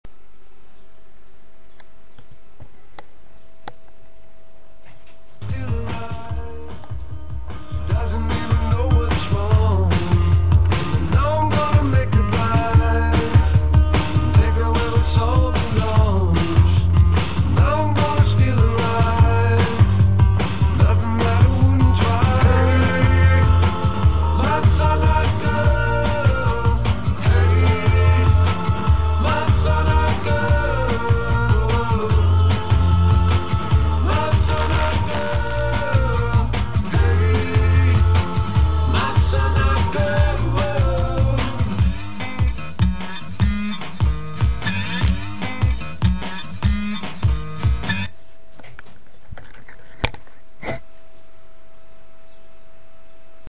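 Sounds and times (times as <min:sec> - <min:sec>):
song: 0:05.4 - 0:48.0.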